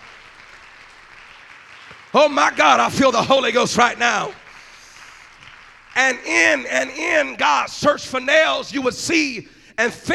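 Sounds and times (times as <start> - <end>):
audience clapping hands: 0.0 - 7.7
speech: 2.1 - 4.4, 6.0 - 10.1.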